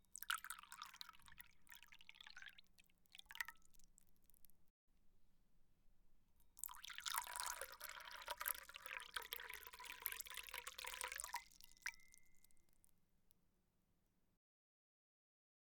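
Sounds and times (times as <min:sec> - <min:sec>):
water pouring into cup: 0:00.1 - 0:03.7, 0:06.6 - 0:12.3.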